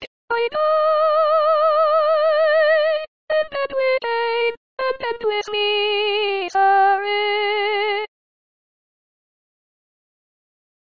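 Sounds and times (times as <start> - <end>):
soprano singing: 0.3 - 8.1.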